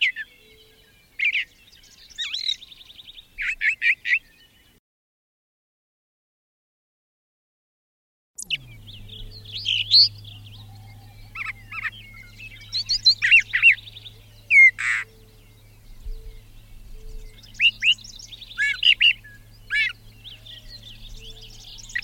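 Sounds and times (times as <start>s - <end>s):
brown thrasher singing: 0.0s - 4.8s, 8.4s - 22.0s.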